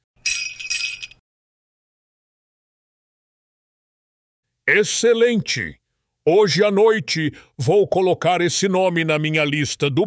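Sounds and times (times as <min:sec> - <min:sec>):
sleigh bells jingling: 0:00.2 - 0:01.2
speech: 0:04.7 - 0:10.0.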